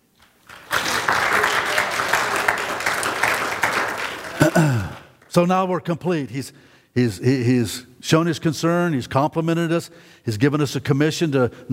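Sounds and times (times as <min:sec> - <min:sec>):
audience clapping hands: 0:00.2 - 0:05.4
speech: 0:04.6 - 0:11.7.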